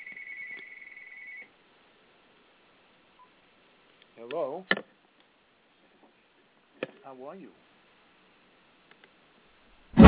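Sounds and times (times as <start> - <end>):
telephone ringing: 0.0 - 1.5
quiet hiss: 0.0 - 10.0
speech: 4.2 - 4.9, 7.1 - 7.7.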